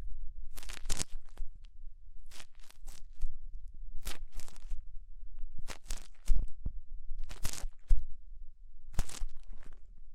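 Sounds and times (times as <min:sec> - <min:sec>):
faint low rumble: 0:00.0 - 0:10.1
ear cleaning with rhinestone and clay removal scrapes: 0:00.5 - 0:01.5, 0:02.2 - 0:03.3, 0:04.0 - 0:04.8, 0:05.6 - 0:06.5, 0:07.2 - 0:08.0, 0:08.9 - 0:09.9.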